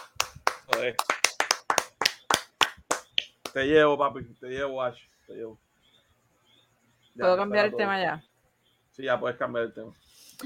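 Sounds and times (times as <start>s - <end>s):
single person clapping: 0.0s - 3.7s
speech: 0.8s - 1.2s, 3.6s - 5.7s, 7.2s - 8.3s, 9.0s - 10.4s.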